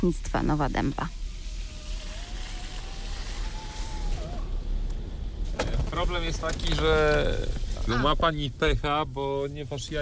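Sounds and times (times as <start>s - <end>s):
speech: 0.0s - 1.2s, 6.0s - 10.0s
rain falling in a forest: 0.0s - 10.0s.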